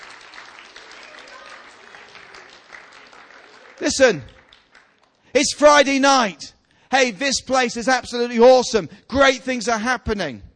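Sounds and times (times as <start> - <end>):
audience giving a hand clap: 0.0 - 5.5
speech: 3.8 - 4.4, 5.3 - 10.5.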